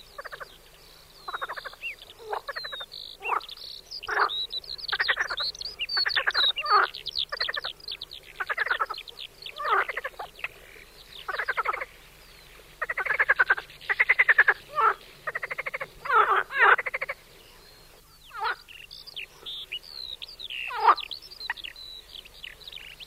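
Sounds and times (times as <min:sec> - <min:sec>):
marsh frog croaking in pulsed rattling bursts: 0:00.2 - 0:00.6, 0:01.2 - 0:11.9, 0:12.8 - 0:17.2, 0:18.3 - 0:19.7, 0:20.5 - 0:21.8.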